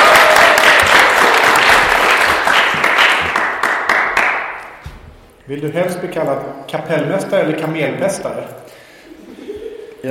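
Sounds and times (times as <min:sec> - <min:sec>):
audience applause: 0:00.0 - 0:04.7
speech: 0:05.5 - 0:08.8.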